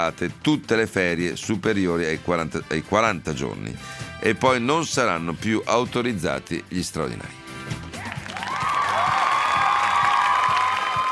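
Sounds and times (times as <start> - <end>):
speech: 0.0 - 7.8
crowd applauding: 7.9 - 11.1
shouts and cheering voices: 8.0 - 11.1.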